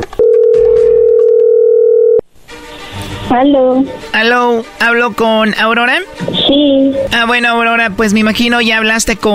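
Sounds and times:
electronic telephone ringing tone: 0.1 - 2.2
speech: 3.3 - 9.3.

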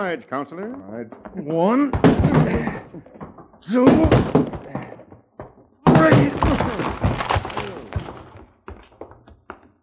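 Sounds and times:
speech: 0.0 - 4.8
men ramming a door down: 1.8 - 5.0, 5.8 - 8.4.

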